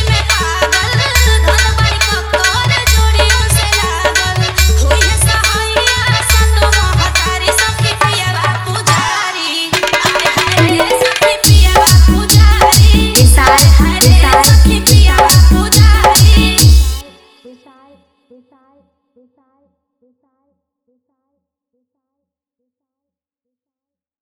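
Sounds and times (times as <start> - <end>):
Navratri DJ song: 0.0 - 17.0.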